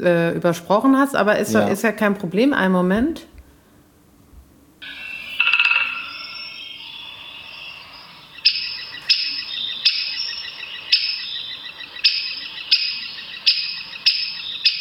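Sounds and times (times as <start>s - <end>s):
speech: 0.0s - 3.3s
recorded woodpecker alarm call: 4.8s - 14.8s.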